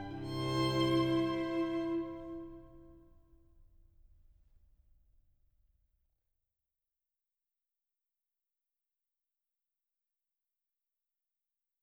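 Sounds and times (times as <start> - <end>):
canon for two violins, viola and bass: 0.0 - 2.9.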